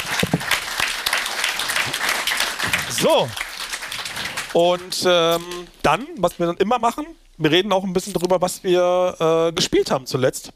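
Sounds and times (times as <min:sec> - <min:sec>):
small group clapping: 0:00.0 - 0:05.7
speech: 0:03.0 - 0:03.4, 0:04.5 - 0:10.5.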